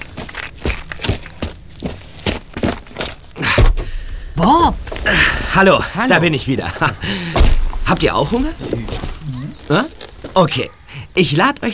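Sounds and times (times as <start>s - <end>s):
footsteps of people walking back into the house: 0.0s - 3.9s, 7.4s - 10.5s
speech: 5.6s - 9.1s, 9.7s - 11.7s.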